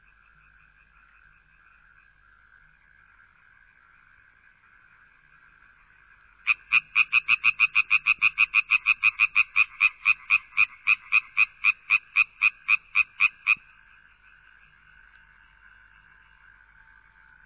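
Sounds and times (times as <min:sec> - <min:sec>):
frog croaking in loud rasping pulses and trills: 0:00.0 - 0:17.4.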